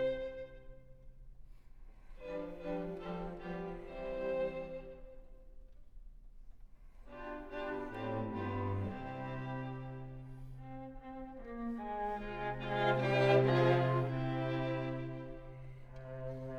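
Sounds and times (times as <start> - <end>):
string quartet playing an adagio cantabile and allegro: 0.0 - 0.6, 2.2 - 5.3, 7.1 - 16.5.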